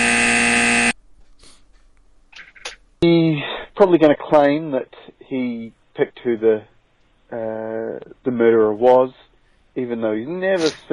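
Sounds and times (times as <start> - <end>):
game show buzzer: 0.0 - 1.0
speech: 3.8 - 6.7, 7.3 - 9.2, 9.8 - 10.9.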